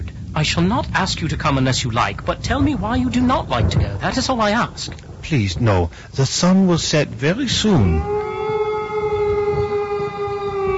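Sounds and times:
low rumble: 0.0 - 10.7
speech: 0.4 - 8.2
wolf howling: 7.6 - 10.7.

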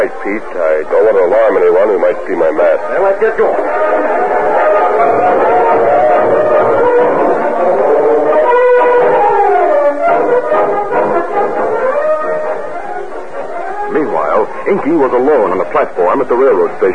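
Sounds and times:
speech: 0.0 - 4.4, 13.9 - 16.9
train whistle: 2.9 - 14.7.

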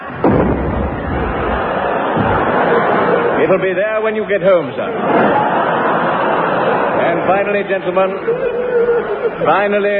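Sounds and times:
cannon firing: 0.0 - 3.3
laughter: 0.8 - 9.9
speech: 3.4 - 5.6, 7.0 - 9.9.

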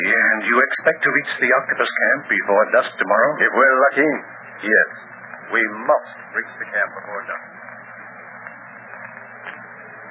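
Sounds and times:
radio static from a weak link: 0.0 - 10.1
speech: 0.6 - 7.5
faint radio crackles: 7.4 - 10.1.

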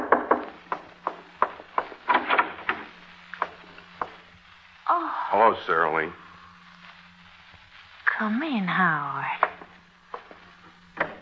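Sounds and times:
knocking on a wooden door: 0.0 - 1.9
faint steady low hum: 0.4 - 11.1
speech: 5.3 - 6.2, 8.2 - 9.4.

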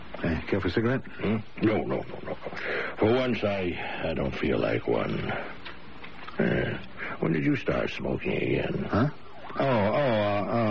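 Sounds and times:
speech: 0.3 - 5.7, 6.4 - 10.6
ambulance siren: 9.2 - 10.6.

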